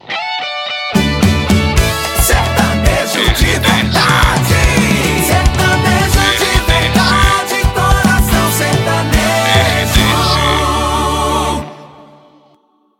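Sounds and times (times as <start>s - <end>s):
sertanejo music: 0.2s - 12.5s.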